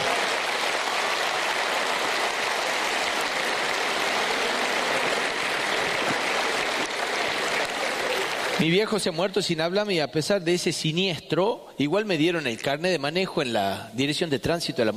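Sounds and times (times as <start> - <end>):
crowd applause: 0.0 - 9.0
speech: 8.6 - 14.9.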